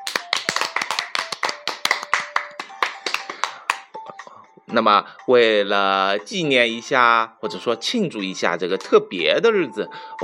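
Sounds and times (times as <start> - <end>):
hands clapping: 0.0 - 4.0
speech: 4.7 - 10.2.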